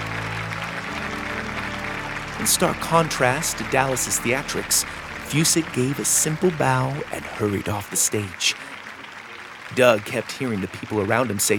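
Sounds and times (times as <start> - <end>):
low hum: 0.0 - 8.0
audience applause after a show: 0.0 - 11.5
speech: 2.4 - 8.7, 9.8 - 11.5.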